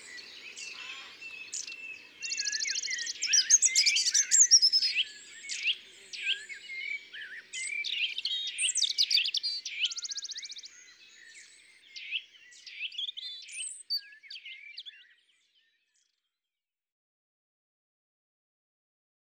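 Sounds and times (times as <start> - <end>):
European robin singing: 0.0 - 15.4.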